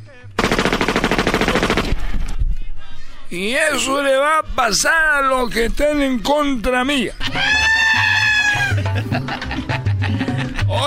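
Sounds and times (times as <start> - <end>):
firing squad gunfire: 0.4 - 2.3
speech: 3.3 - 7.8
laughter: 7.2 - 10.8.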